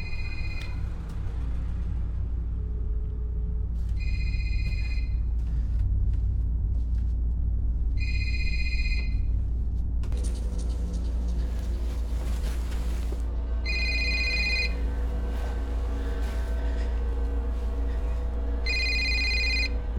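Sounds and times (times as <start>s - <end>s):
steady low rumble: 0.0s - 19.9s
phone ringing: 13.7s - 14.8s, 18.7s - 19.7s.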